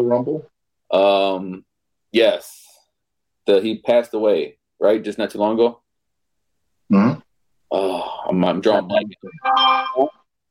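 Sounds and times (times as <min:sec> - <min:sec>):
speech: 0:00.0 - 0:02.7, 0:03.4 - 0:05.8, 0:06.9 - 0:10.2
phone notification ding: 0:09.4 - 0:10.1.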